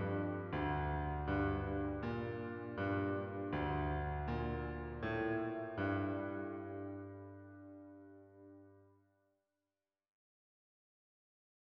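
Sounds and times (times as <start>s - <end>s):
slow piano cutscene music: 0.0s - 8.9s.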